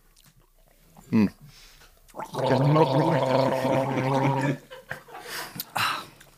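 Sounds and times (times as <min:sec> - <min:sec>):
speech: 0:01.1 - 0:01.4, 0:02.2 - 0:04.6
people gargling wine during an Ahr wine tasting: 0:02.1 - 0:04.7
people laughing: 0:04.2 - 0:05.6.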